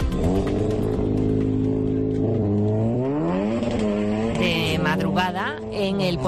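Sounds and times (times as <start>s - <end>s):
tuned car engines revving: 0.0s - 6.2s
speech: 5.0s - 6.2s.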